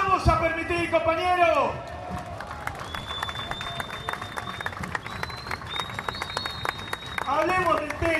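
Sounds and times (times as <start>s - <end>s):
speech: 0.2s - 2.2s, 7.3s - 8.1s
crowd applause: 1.9s - 8.1s.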